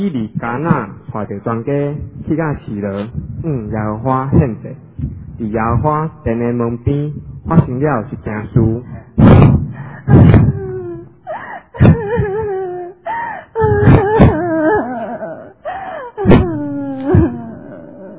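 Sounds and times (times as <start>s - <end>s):
speech: 0.0s - 9.5s
woman crying loudly in a dramatized Bible story: 9.9s - 18.1s.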